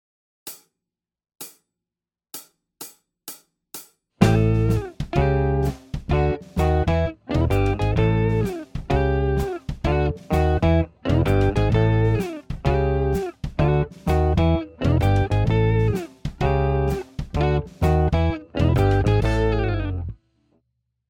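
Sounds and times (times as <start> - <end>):
Chicago blues guitar: 4.2 - 20.2.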